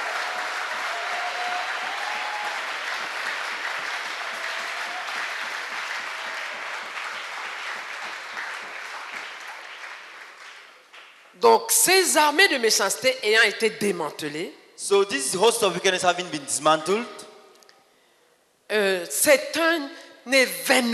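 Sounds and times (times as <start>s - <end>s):
audience clapping: 0.0s - 11.3s
speech: 11.4s - 17.2s, 18.7s - 20.9s.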